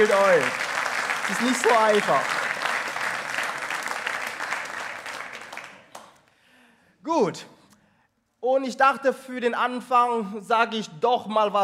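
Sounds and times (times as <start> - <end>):
speech: 0.0 - 0.7, 1.3 - 2.4, 7.1 - 7.5, 8.4 - 11.6
audience applause: 0.0 - 6.2.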